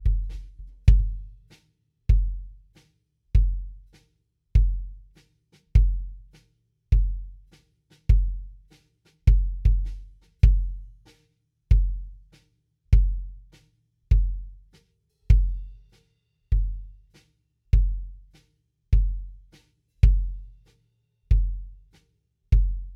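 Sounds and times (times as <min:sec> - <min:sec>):
kick drum: 0:00.0 - 0:01.5, 0:02.1 - 0:02.8, 0:03.4 - 0:03.9, 0:04.6 - 0:06.3, 0:06.9 - 0:07.5, 0:08.1 - 0:08.7, 0:09.3 - 0:11.0, 0:11.7 - 0:12.3, 0:12.9 - 0:13.5, 0:14.1 - 0:14.7, 0:15.3 - 0:15.8, 0:16.5 - 0:17.0, 0:17.8 - 0:18.3, 0:18.9 - 0:20.6, 0:21.3 - 0:21.8, 0:22.5 - 0:22.9.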